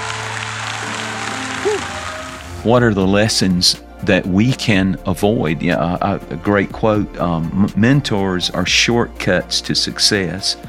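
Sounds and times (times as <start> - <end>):
audience clapping: 0.0 - 2.7
speech: 1.6 - 2.0, 2.6 - 10.6.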